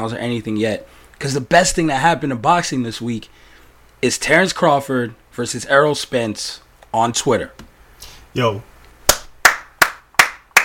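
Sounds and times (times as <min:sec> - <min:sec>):
speech: 0:00.0 - 0:07.7, 0:08.4 - 0:08.7
hand claps sound effect: 0:09.1 - 0:10.6.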